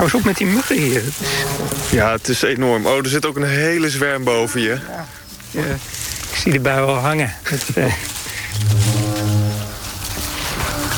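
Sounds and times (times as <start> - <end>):
speech: 0.0 - 8.8
distant low horn blast with buzzy tone: 1.2 - 2.2, 8.5 - 10.9.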